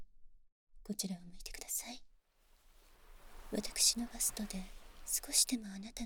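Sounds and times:
ASMR nursing sucking sounds: 2.5 - 5.9.

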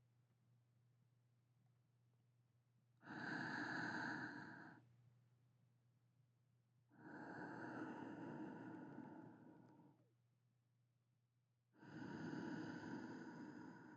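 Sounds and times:
sleeping breathing: 3.0 - 4.8, 7.0 - 10.0, 11.8 - 13.9.

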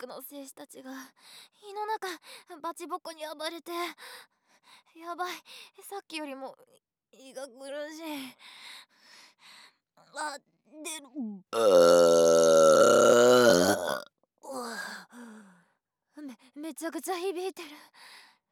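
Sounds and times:
very big burp: 11.6 - 14.1.

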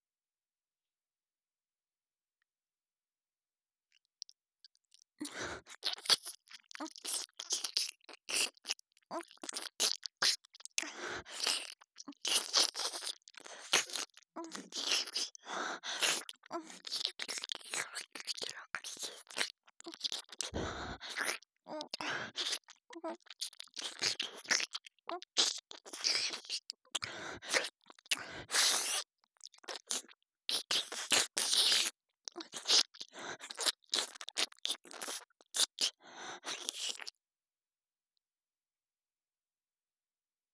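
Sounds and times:
strong slurping: 4.9 - 37.1.

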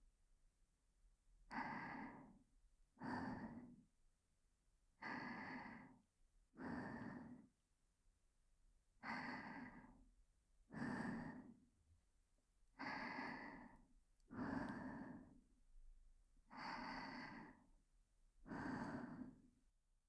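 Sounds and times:
breathing only: 1.5 - 2.4, 3.0 - 3.8, 5.0 - 7.6, 9.0 - 10.0, 10.7 - 11.7, 12.8 - 15.5, 16.5 - 17.7, 18.4 - 19.6.

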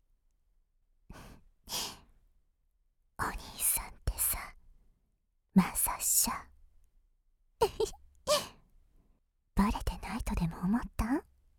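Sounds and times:
ASMR whispering: 3.2 - 4.6, 5.6 - 6.5, 9.6 - 11.3.

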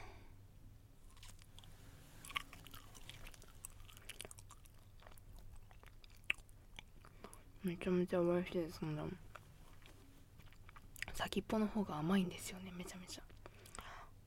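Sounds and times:
person chewing food: 1.0 - 7.6, 9.3 - 11.1, 13.3 - 13.9
speech: 7.6 - 9.3, 11.2 - 13.3.

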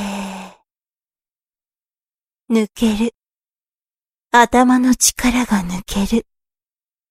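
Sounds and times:
sighing exhale during a guided relaxation exercise: 0.0 - 0.6
speech: 2.5 - 3.2, 4.3 - 6.3.

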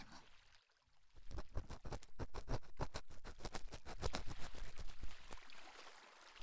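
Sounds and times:
ear cleaning on right ear: 1.3 - 4.8.

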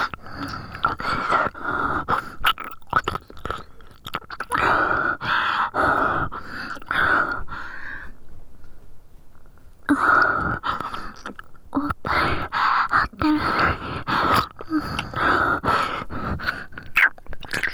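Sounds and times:
ear licking left and right: 0.0 - 5.8, 9.9 - 17.7.

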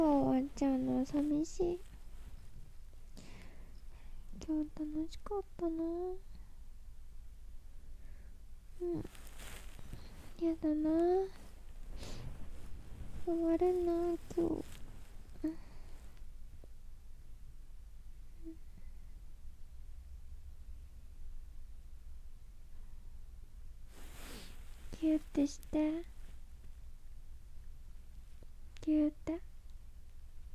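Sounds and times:
sleep talking: 0.0 - 1.9, 3.2 - 6.2, 8.8 - 9.2, 9.9 - 12.2, 13.1 - 15.9, 24.9 - 26.1
real person breathing in sleep: 3.2 - 4.3, 11.9 - 12.4, 15.5 - 16.1, 23.9 - 24.6.

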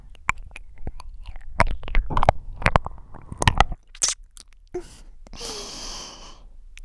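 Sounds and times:
ear licking: 0.2 - 4.8.

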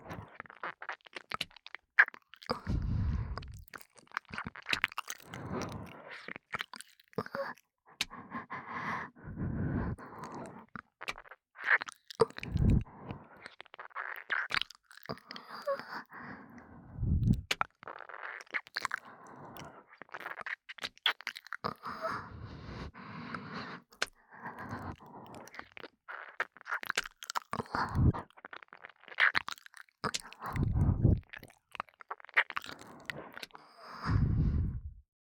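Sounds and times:
ASMR ear licking: 0.0 - 8.6, 9.4 - 16.0, 17.0 - 34.8
breathy ASMR breathing in the right ear: 2.5 - 3.6, 5.3 - 6.2, 8.0 - 10.7, 12.4 - 13.5, 15.7 - 17.5, 19.0 - 19.9, 21.8 - 25.6, 27.7 - 28.2, 30.4 - 31.2, 32.8 - 35.0.

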